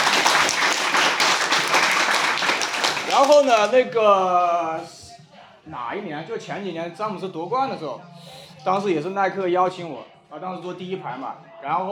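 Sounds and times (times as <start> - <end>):
group clapping: 0.0 - 3.8
speech: 3.2 - 5.0, 5.6 - 11.9.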